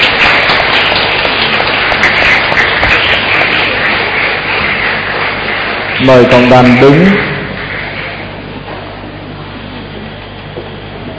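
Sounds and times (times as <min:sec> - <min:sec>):
audience applause: 0:00.0 - 0:08.3
speech: 0:06.0 - 0:07.3.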